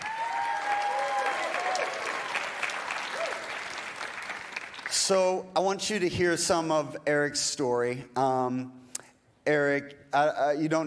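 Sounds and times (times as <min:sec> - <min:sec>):
church congregation applauding: 0:00.0 - 0:05.2
speech: 0:05.1 - 0:08.8, 0:09.5 - 0:10.8.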